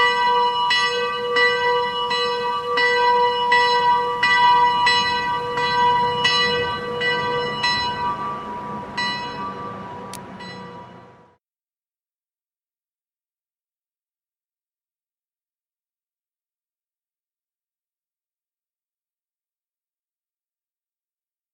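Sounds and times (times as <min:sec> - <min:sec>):
town hall bell ringing: 0:00.0 - 0:11.3.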